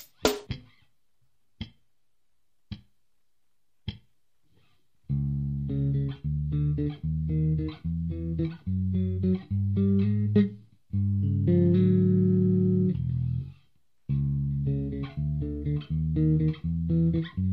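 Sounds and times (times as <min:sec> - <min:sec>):
thumb-picked bass octaves: 0:05.1 - 0:17.5.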